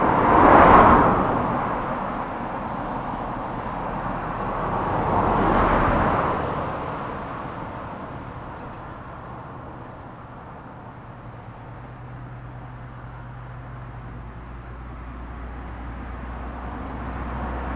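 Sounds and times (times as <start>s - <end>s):
cicadas buzzing in plane trees: 0.0s - 7.9s.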